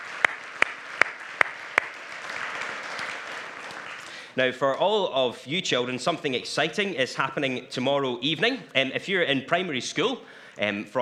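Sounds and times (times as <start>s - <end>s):
audience applause: 0.0s - 10.2s
speech: 4.4s - 11.0s.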